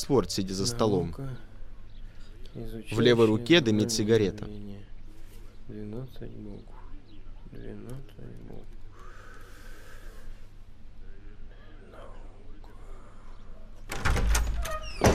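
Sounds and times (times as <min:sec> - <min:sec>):
speech: 0:00.0 - 0:01.5, 0:02.6 - 0:04.9, 0:05.7 - 0:06.8, 0:07.5 - 0:08.8
door being forced or banged open: 0:13.9 - 0:15.1.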